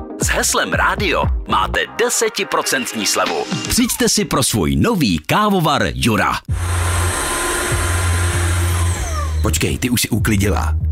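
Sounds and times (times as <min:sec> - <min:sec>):
speech: 0:00.2 - 0:06.9, 0:09.5 - 0:10.9
Rowenta cordless stick vacuum cleaner motor whirring: 0:06.6 - 0:09.8.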